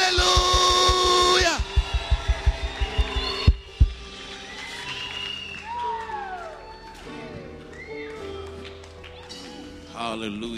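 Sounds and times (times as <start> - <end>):
deep rhythmic thumps: 0.0 - 4.0
audience cheering and screaming: 0.2 - 9.8
speech: 10.2 - 10.5.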